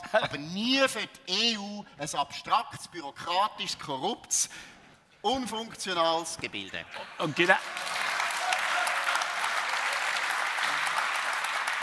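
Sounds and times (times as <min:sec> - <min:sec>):
speech: 0:00.1 - 0:08.0
audience applause: 0:07.3 - 0:11.8.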